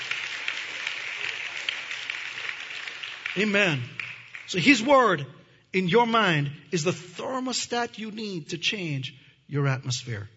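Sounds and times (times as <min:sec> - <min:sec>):
audience clapping hands: 0:00.0 - 0:05.2
speech: 0:03.4 - 0:10.3.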